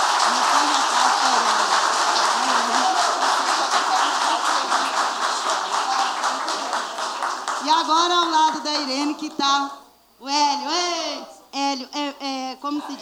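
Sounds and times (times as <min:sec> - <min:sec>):
audience applause: 0:00.0 - 0:08.6
speech: 0:07.8 - 0:12.0.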